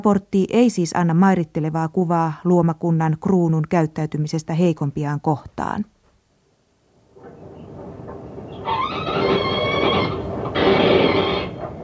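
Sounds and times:
speech: 0.0 - 5.9
rumbling scuffling noise: 7.0 - 11.8
mink screaming: 8.6 - 11.6.

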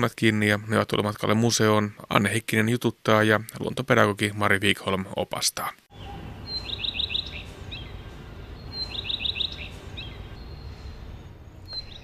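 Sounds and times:
speech: 0.0 - 5.8
low hiss: 0.0 - 12.0
common redstart singing: 5.9 - 12.0.

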